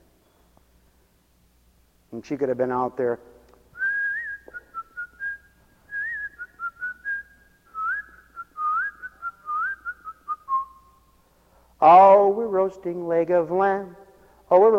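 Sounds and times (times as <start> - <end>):
speech: 2.1 - 3.4, 11.8 - 14.7
person whistling a cheerful tune: 3.8 - 11.0.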